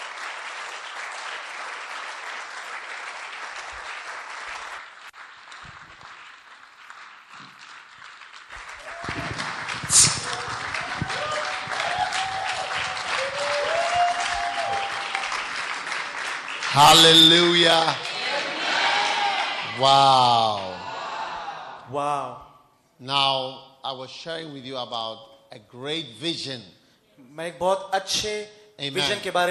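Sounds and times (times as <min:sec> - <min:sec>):
audience applause: 0:00.0 - 0:19.9
speech: 0:16.8 - 0:18.1, 0:19.8 - 0:20.8, 0:21.9 - 0:26.8, 0:27.4 - 0:29.4.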